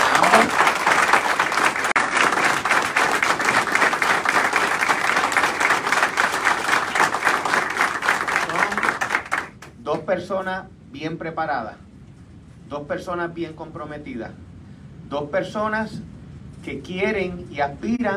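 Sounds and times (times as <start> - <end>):
audience applause: 0.0 - 9.7
speech: 0.4 - 0.6, 10.2 - 11.8, 12.7 - 14.4, 15.1 - 16.0, 16.7 - 18.1.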